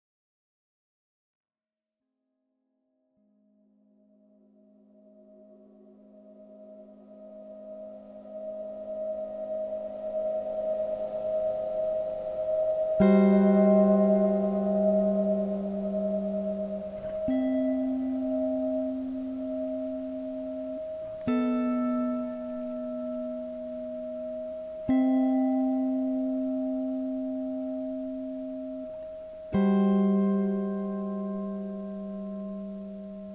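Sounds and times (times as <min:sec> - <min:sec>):
small guitar piece: 0:04.4 - 0:33.3.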